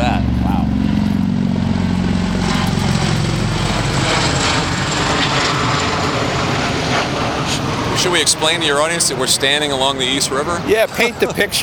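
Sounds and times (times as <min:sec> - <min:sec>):
seaplane flying overhead: 0:00.0 - 0:11.6
speech: 0:08.2 - 0:11.6.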